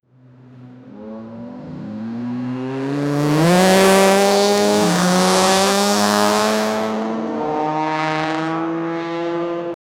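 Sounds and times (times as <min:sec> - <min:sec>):
supercar racing: 0:00.1 - 0:09.8.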